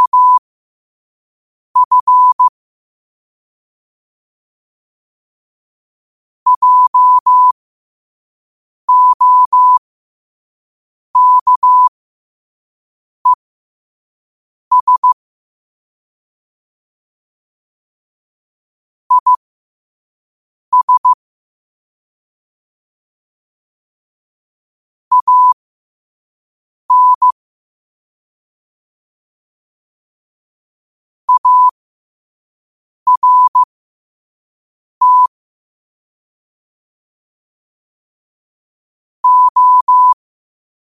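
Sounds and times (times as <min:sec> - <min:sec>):
morse code at 5 wpm: 0:00.0 - 0:00.4, 0:01.8 - 0:02.5, 0:06.5 - 0:07.6, 0:08.9 - 0:09.8, 0:11.2 - 0:11.9, 0:14.7 - 0:15.2, 0:19.1 - 0:19.4, 0:20.7 - 0:21.2, 0:25.1 - 0:25.6, 0:26.9 - 0:27.4, 0:31.3 - 0:31.8, 0:33.1 - 0:33.7, 0:35.0 - 0:35.3, 0:39.2 - 0:40.2.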